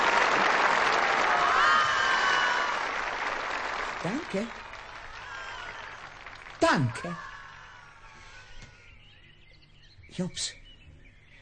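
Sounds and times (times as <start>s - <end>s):
audience applause: 0.0s - 7.8s
speech: 4.0s - 4.6s, 6.6s - 7.3s, 10.2s - 10.6s.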